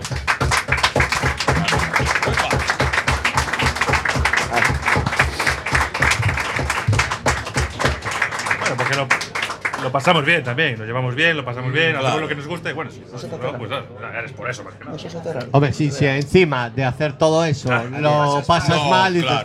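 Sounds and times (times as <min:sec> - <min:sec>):
audience applause: 0:00.0 - 0:10.2
speech: 0:09.9 - 0:19.4.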